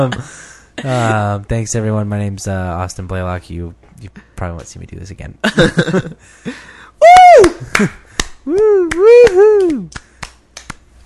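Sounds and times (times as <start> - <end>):
speech: 0.0 - 10.0
one person clapping: 7.2 - 10.8.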